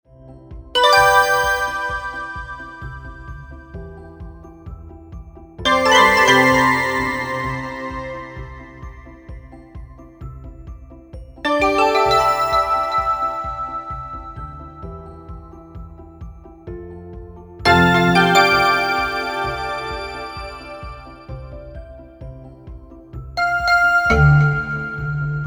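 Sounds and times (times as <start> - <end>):
notification sound: 0.8 - 3.8, 5.7 - 9.2, 11.5 - 15.5, 17.7 - 21.5, 23.4 - 25.4.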